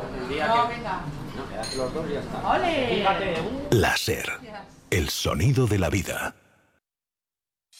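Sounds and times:
speech: 0.4 - 6.4
dishes and cutlery clinking in a café: 1.3 - 2.1
several people chatting in a café: 3.7 - 6.4.

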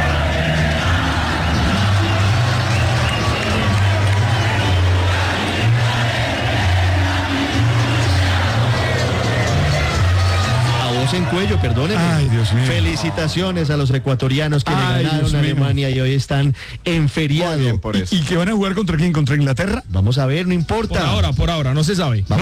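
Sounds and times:
Colombian fans singing in unison in the MetLife Stadium crowd in New Jersey: 0.0 - 13.2
dense stadium crowd roar: 0.0 - 15.0
speech: 11.2 - 22.4.

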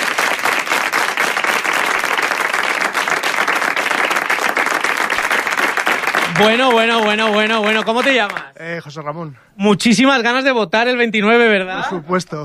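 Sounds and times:
studio audience applause: 0.0 - 8.6
speech: 6.4 - 12.4.

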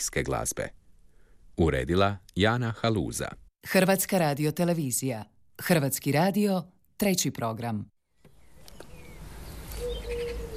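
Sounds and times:
speech: 0.0 - 0.8, 1.6 - 7.9
small birds singing in pine trees in front of a house terrace: 8.2 - 10.5.

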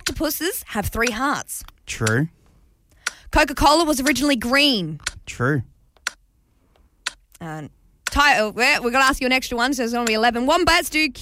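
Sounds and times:
quiz timer clicking: 0.0 - 0.4, 1.0 - 2.3, 2.9 - 4.3, 4.9 - 6.2, 7.0 - 7.4, 8.0 - 8.5, 10.0 - 10.3
speech: 0.0 - 2.4, 3.3 - 5.7, 7.4 - 11.2.

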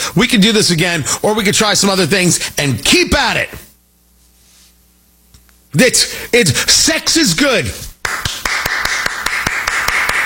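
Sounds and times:
faint hum: 0.0 - 10.2
speech: 0.2 - 3.6, 5.7 - 7.9
one person clapping alone: 8.0 - 10.2.

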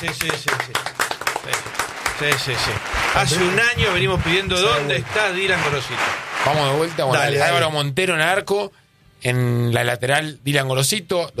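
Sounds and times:
rhythmic hand clapping: 0.0 - 7.7
speech: 0.0 - 11.3.

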